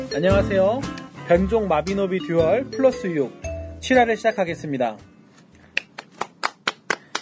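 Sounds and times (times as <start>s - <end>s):
speech: 0.2s - 5.1s
sharp hand claps: 5.7s - 7.2s.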